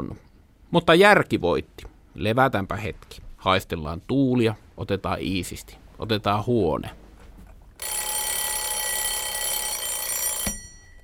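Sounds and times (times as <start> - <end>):
speech: 0.7 - 7.0
morning wake-up alarm clock ringing: 7.8 - 11.0.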